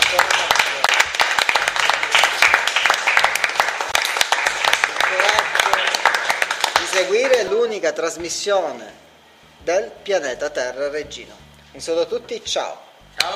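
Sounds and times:
group clapping: 0.0s - 7.6s
speech: 7.8s - 13.3s.

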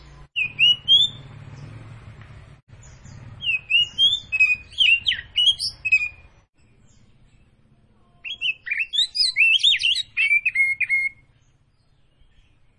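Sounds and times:
Oriental magpie-robin of the Tretes form singing vigorously with whistled phrases: 0.4s - 1.3s, 3.4s - 6.3s, 8.2s - 11.3s.

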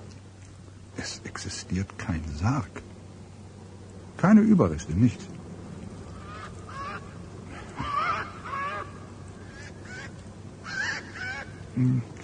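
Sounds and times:
low rumble: 0.0s - 12.2s
speech: 1.0s - 2.9s, 4.2s - 5.3s, 11.8s - 12.1s
pair of large hooded crows in an ash tree cawing: 6.0s - 11.8s.

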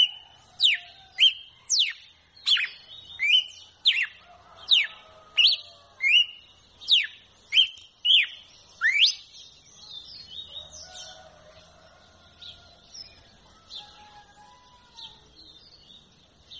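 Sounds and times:
red-cowled cardinal whistled song: 0.0s - 4.2s, 4.8s - 9.4s.

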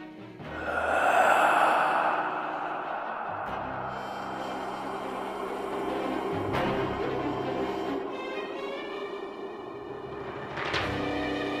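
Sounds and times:
wheezing, rattling labored breathing: 0.4s - 11.5s.

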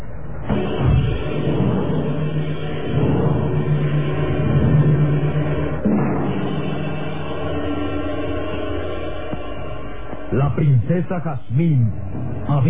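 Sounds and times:
car engine revving and driving off: 0.4s - 10.4s
speech: 10.5s - 12.6s.

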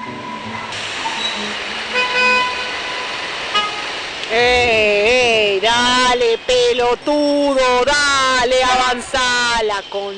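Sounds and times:
car horns honking in a Buenos Aires traffic jam: 1.2s - 4.0s
speech: 4.3s - 4.9s, 5.6s - 10.1s.

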